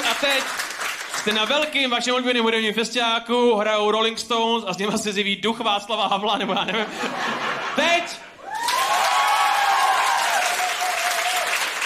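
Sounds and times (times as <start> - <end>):
audience applause: 0.0 - 1.8, 8.5 - 11.8
speech: 1.2 - 8.3
laughter: 6.3 - 8.3.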